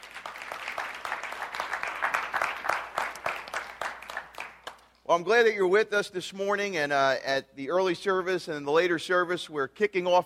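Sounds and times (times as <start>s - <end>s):
church congregation clapping after worship music at a morning service: 0.0s - 5.0s
speech: 5.1s - 10.2s.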